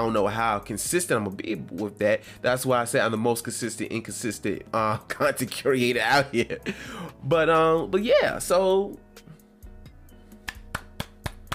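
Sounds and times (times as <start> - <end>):
speech: 0.0 - 9.3
one person clapping alone: 10.3 - 11.5.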